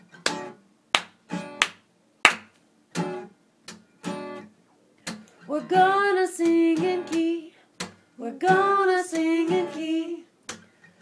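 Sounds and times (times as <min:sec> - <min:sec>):
hands clapping in rhythm: 0:00.2 - 0:03.1, 0:05.1 - 0:05.3, 0:09.1 - 0:09.4, 0:10.5 - 0:10.7
speech: 0:05.5 - 0:07.2, 0:08.2 - 0:10.2.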